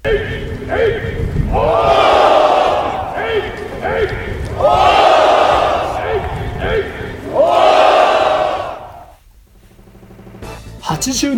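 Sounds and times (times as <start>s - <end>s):
crowd shouting battle cry: 0.0s - 9.1s
speech: 11.1s - 11.3s.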